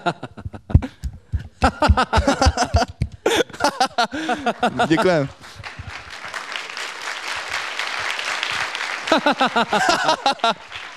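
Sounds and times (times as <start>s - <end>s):
speech: 0.0s - 0.4s, 4.4s - 5.4s, 9.2s - 10.8s
laughter: 0.0s - 5.8s, 9.0s - 10.9s
crowd clapping: 1.6s - 10.9s
people cheering or calling: 4.4s - 10.9s.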